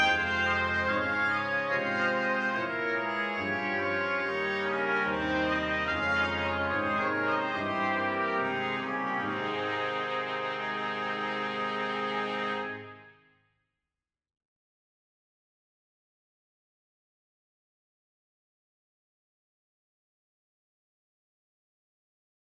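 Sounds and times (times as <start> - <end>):
brass ensemble playing: 0.0 - 13.2.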